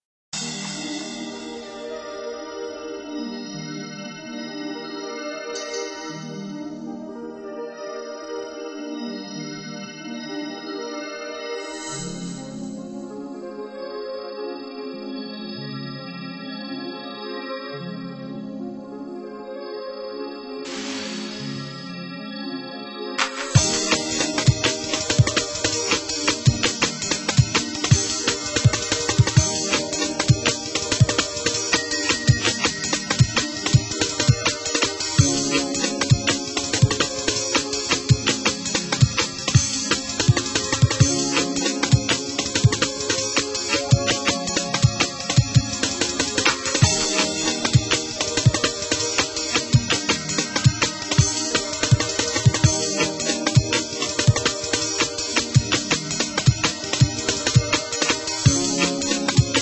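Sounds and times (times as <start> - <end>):
drum and bass mix: 0.4 - 2.2, 20.7 - 21.9, 23.2 - 59.5.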